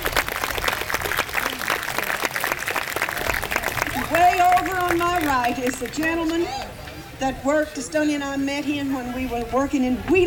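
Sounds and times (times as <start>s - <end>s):
New York audience applauding to welcome a young musician: 0.0s - 6.7s
speech: 5.5s - 10.2s.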